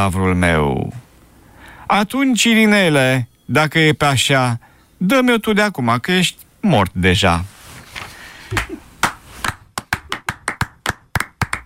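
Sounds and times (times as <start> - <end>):
speech: 0.0 - 1.0, 1.9 - 7.6, 8.5 - 8.7
audience applause: 9.8 - 11.6.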